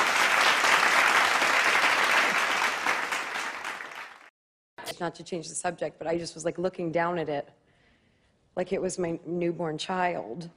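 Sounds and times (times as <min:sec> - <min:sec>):
hands clapping: 0:00.0 - 0:04.3
speech: 0:05.0 - 0:07.6, 0:08.6 - 0:10.5.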